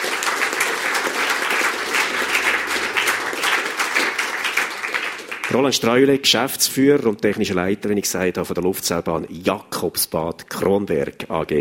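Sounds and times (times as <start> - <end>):
audience applause: 0.0 - 6.0
speech: 5.5 - 11.5.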